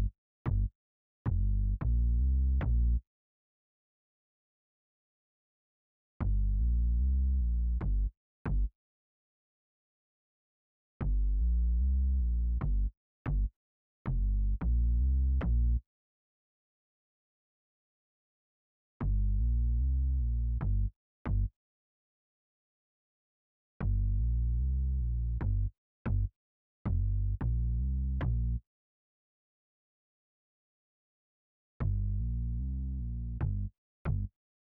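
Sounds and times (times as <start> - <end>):
deep round synth bass: 0.0 - 0.7, 1.3 - 3.0, 6.2 - 8.7, 11.0 - 13.5, 14.1 - 15.8, 19.0 - 21.5, 23.8 - 26.3, 26.9 - 28.6, 31.8 - 34.3.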